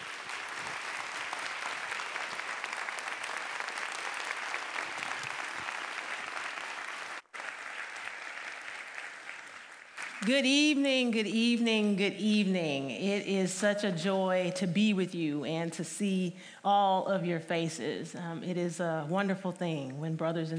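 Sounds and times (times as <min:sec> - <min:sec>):
audience round of applause: 0:00.0 - 0:10.3
speech: 0:10.2 - 0:20.5.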